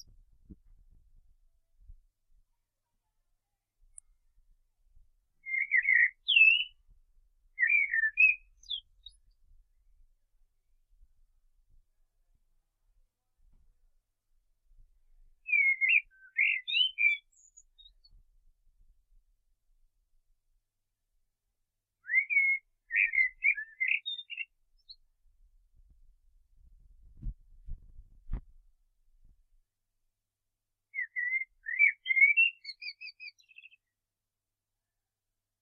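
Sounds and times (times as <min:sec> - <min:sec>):
common blackbird singing: 0:05.4 - 0:06.8, 0:07.6 - 0:09.2, 0:15.5 - 0:18.1, 0:22.0 - 0:25.0, 0:30.9 - 0:33.9.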